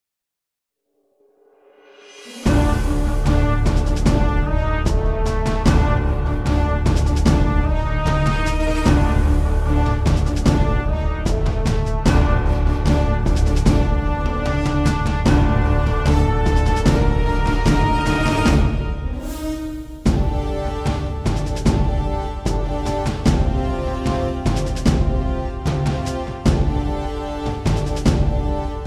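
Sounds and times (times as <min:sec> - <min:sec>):
background music: 0:01.6 - 0:28.8.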